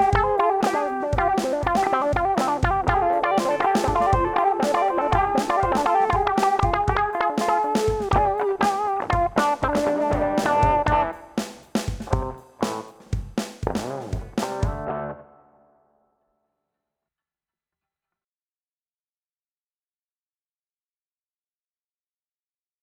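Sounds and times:
funk guitar through a Zoom G11 effects processor: 0.0 - 15.4.

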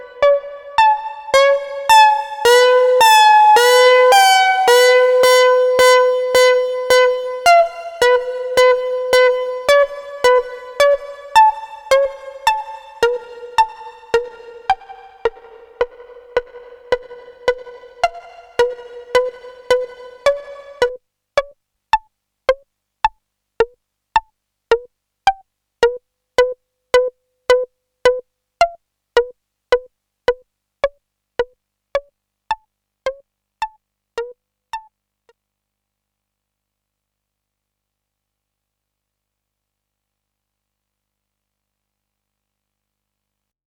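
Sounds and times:
synth pluck in B minor: 0.0 - 21.5, 23.6 - 30.4, 33.1 - 34.9.

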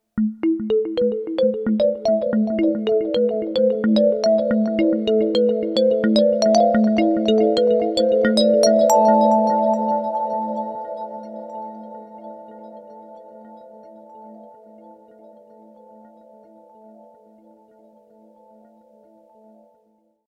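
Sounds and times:
Sh-4d FM space marimba synth: 0.2 - 12.7.

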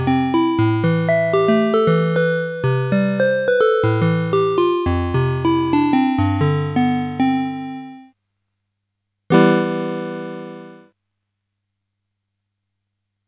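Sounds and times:
Casio MT 400V harpsichord vibraphone keyboard tone: 0.0 - 8.0, 9.3 - 10.8.

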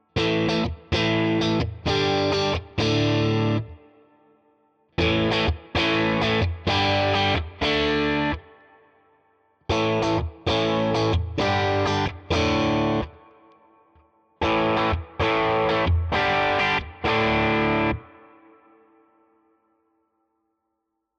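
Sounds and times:
Ibanez AZ SDB guitar crunch chords in all positions: 0.0 - 4.0, 5.0 - 8.8, 9.7 - 13.8, 14.4 - 18.6.

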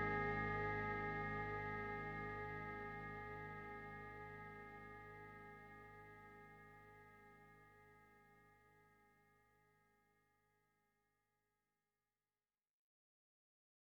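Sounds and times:
Elektron Digitone synth pad: 0.0 - 8.0.

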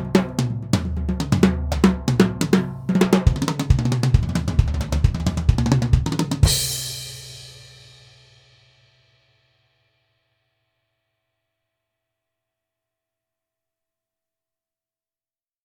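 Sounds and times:
snare drum with snares off: 0.0 - 8.3.

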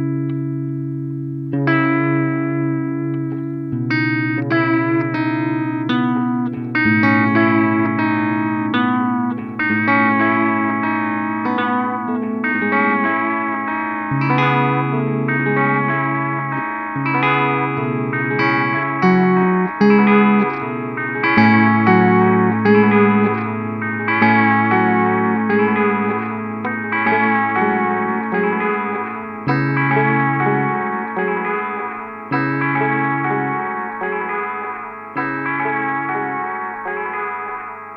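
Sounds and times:
EHX Pico Rerun long delay with modulation and saturation: 0.1 - 37.3.

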